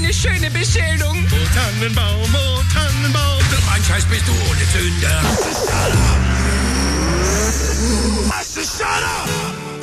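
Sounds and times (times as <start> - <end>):
speech: 0.1 - 6.4, 7.5 - 9.6
race car number 12 engine revving with whining gear changes into pit lane: 5.2 - 8.3.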